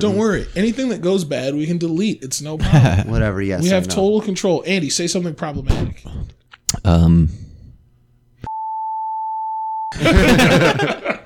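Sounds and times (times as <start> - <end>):
speech: 0.0 - 7.4, 9.9 - 11.2
censor bleep tone: 8.5 - 10.0
laughter: 9.9 - 11.2.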